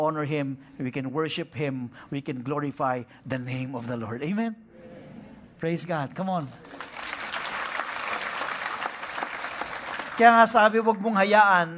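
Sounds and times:
speech: 0:00.0 - 0:04.6, 0:05.6 - 0:06.9, 0:10.2 - 0:11.7
congregation clapping during a church worship service: 0:06.5 - 0:10.8.

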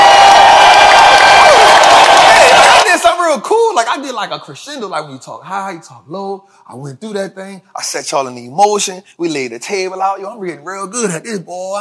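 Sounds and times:
crowd clapping: 0:00.0 - 0:02.9
crowd whoops and shouts: 0:00.0 - 0:02.9
speech: 0:03.3 - 0:11.7.

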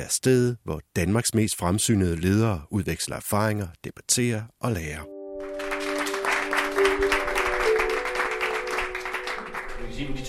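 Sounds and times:
speech: 0:00.0 - 0:05.1, 0:09.8 - 0:10.2
audience applause welcoming the new year at CFL: 0:05.4 - 0:10.1.

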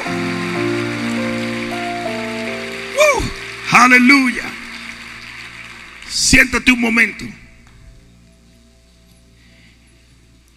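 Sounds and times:
audience clapping: 0:00.0 - 0:07.8
sustained keyboard chords: 0:00.0 - 0:09.1
speech: 0:03.8 - 0:04.5, 0:06.2 - 0:07.4.

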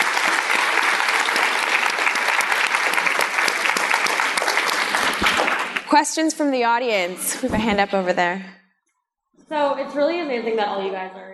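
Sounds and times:
audience applause: 0:00.0 - 0:06.0
speech: 0:06.0 - 0:08.6, 0:09.5 - 0:11.3.

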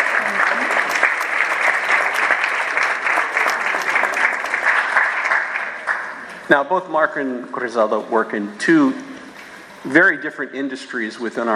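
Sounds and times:
audience applause: 0:00.0 - 0:06.4
speech: 0:06.5 - 0:09.1, 0:09.8 - 0:11.5.

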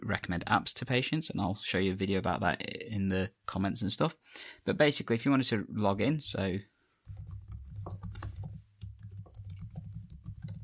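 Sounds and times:
speech: 0:00.1 - 0:07.2
typing a password on a computer keyboard: 0:07.0 - 0:10.6.

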